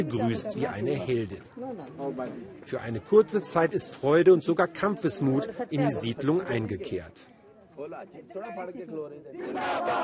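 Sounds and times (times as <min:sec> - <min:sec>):
crowd noise at a brick-factory settlement: 0:00.0 - 0:10.0
speech: 0:00.0 - 0:10.0
brick-factory workers chanting slogans against exploitation: 0:09.3 - 0:10.0.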